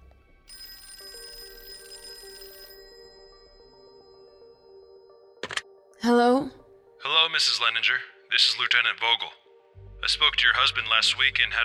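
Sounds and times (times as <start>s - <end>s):
telephone ringing: 0.5s - 5.6s
speech: 7.4s - 9.4s, 10.0s - 11.6s.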